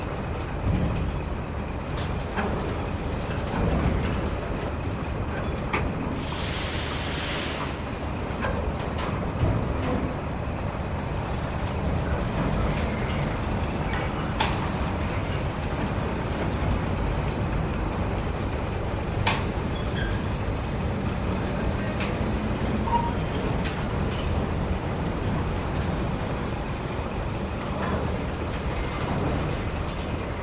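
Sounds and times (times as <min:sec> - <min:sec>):
industrial port ambience: 0:00.0 - 0:30.4.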